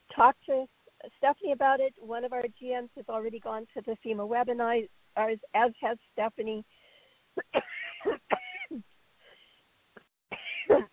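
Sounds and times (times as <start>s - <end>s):
speech: 0.2s - 6.8s, 7.4s - 8.9s
person coughing from asthma: 7.4s - 8.8s, 10.3s - 10.9s.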